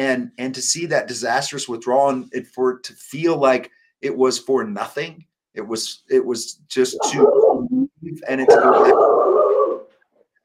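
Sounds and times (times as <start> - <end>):
speech: 0.0 - 7.6, 8.2 - 9.2
dog barking: 7.0 - 7.5, 8.4 - 9.8.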